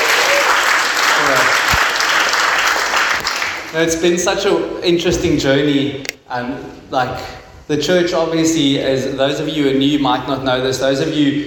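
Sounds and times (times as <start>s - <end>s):
audience applause: 0.0s - 3.7s
speech: 3.7s - 11.4s.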